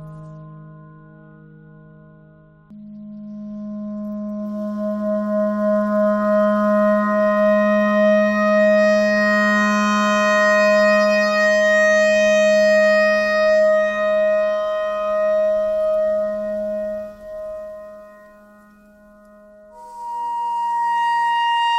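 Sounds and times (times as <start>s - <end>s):
simple clarinet notes: 5.5s - 21.7s.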